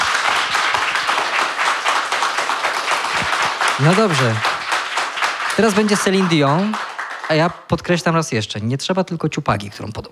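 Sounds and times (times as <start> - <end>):
audience applause: 0.0 - 7.8
speech: 3.8 - 4.5, 5.6 - 10.1.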